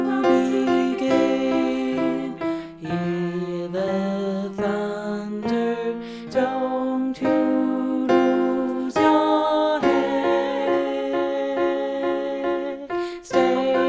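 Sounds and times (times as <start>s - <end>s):
group singalong: 0.0s - 13.8s.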